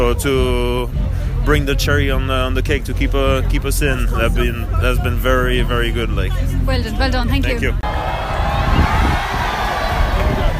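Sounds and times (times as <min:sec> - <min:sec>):
speech: 0:00.1 - 0:08.3
home crowd cheering: 0:07.8 - 0:10.5
shouts and whoops: 0:07.8 - 0:10.5.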